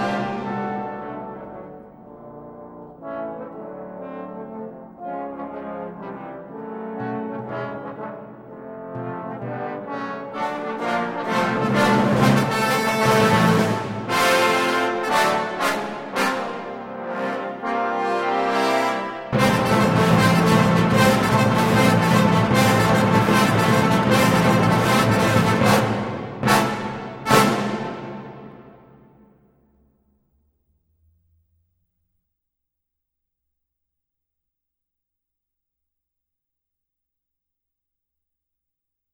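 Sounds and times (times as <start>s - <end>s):
trombone fanfare: 0.0s - 1.7s, 7.5s - 28.8s.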